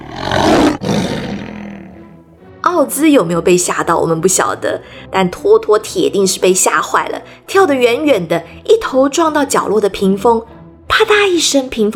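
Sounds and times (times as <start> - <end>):
lion roaring fiercely: 0.0 - 2.2
speech: 2.7 - 11.9.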